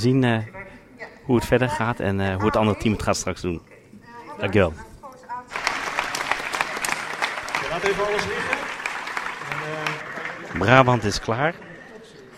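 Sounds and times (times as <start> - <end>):
speech: 0.0 - 0.6, 1.3 - 3.7, 4.4 - 4.9, 7.8 - 8.6, 10.6 - 11.7
audience applauding: 5.5 - 12.3.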